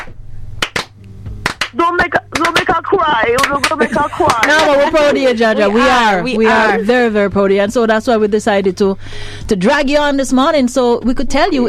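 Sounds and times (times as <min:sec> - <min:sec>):
slow clap: 0:00.0 - 0:05.1
speech: 0:01.7 - 0:11.6
laughter: 0:01.8 - 0:07.0.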